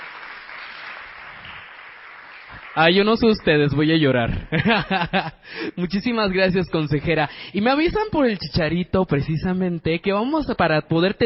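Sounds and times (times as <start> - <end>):
audience applause: 0.0 - 3.9
speech: 2.8 - 11.2
laughter: 4.3 - 5.4.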